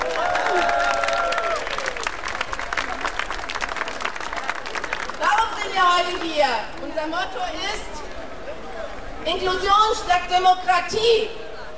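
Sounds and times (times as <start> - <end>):
crowd applause for the drummers: 0.0 - 6.3
speech: 5.8 - 8.0, 9.2 - 11.4.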